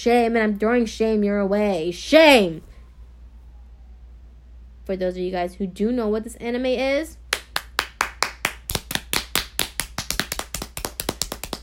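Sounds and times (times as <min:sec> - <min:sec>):
speech: 0:00.0 - 0:02.7, 0:04.9 - 0:07.2
one person clapping hands: 0:07.3 - 0:11.6.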